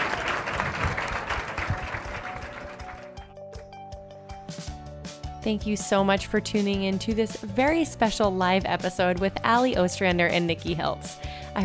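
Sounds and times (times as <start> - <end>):
audience applause: 0.0 - 3.3
speech: 5.4 - 11.6.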